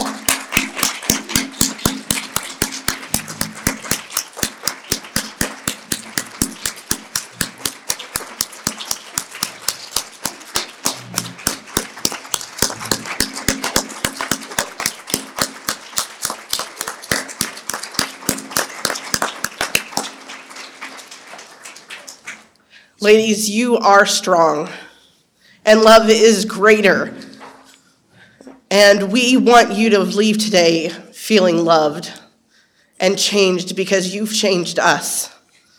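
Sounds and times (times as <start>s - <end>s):
audience applause: 0.0s - 22.4s
speech: 23.0s - 24.8s, 25.6s - 27.2s, 28.8s - 32.2s, 33.0s - 35.3s.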